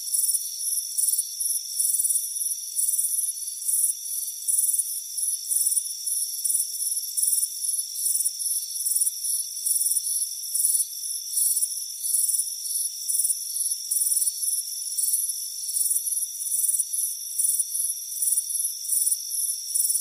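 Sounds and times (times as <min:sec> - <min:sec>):
crickets chirping: 0:00.0 - 0:19.9.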